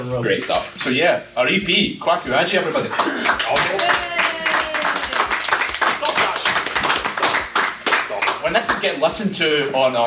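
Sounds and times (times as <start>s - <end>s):
speech: 0.0s - 3.9s, 8.5s - 10.0s
clapping applause: 2.9s - 9.0s.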